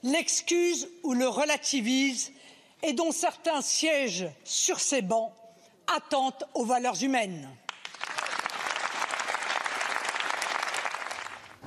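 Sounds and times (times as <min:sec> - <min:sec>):
speech: 0:00.0 - 0:07.6
applause in parliament chamber: 0:07.6 - 0:11.6.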